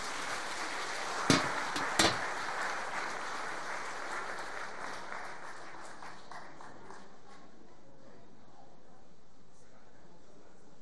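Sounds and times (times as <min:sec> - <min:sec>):
audience applause: 0:00.0 - 0:07.3.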